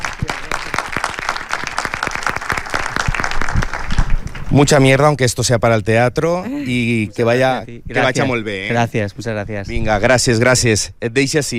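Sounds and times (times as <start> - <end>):
audience applause: 0.0 - 4.7
speech: 4.5 - 11.5.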